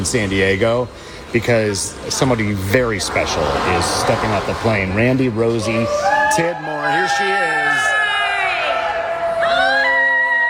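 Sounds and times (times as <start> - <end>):
speech: 0.0 - 7.6
crowd of volunteers cheering as a woman steps off an Honor Flight plane in San Diego: 5.2 - 10.4.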